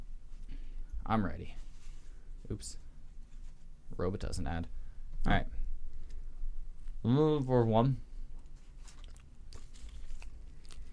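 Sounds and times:
speech: 1.1s - 1.7s, 2.5s - 2.8s, 3.9s - 5.6s, 7.0s - 8.1s
biting into and chewing a fast food burger: 8.5s - 10.9s.

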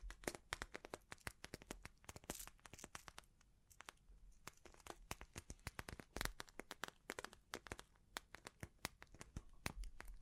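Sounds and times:
bling trigger clicks, taps and crinkly rustles: 0.0s - 10.2s
faint soft hiss: 0.0s - 10.2s.

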